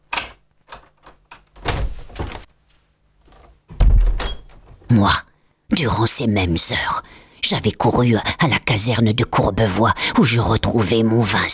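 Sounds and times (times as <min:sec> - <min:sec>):
door being opened: 0:00.1 - 0:02.5, 0:03.3 - 0:04.9
speech: 0:04.9 - 0:11.5.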